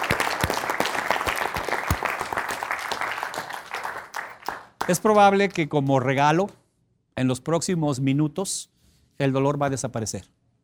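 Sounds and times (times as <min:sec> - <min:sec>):
audience applause: 0:00.0 - 0:05.0
speech: 0:04.9 - 0:06.6, 0:07.2 - 0:10.4.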